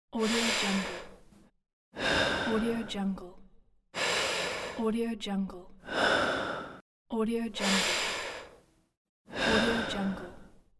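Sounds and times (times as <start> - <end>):
calm steady breathing: 0.1 - 3.1, 4.0 - 4.9, 5.8 - 6.8, 7.6 - 10.7.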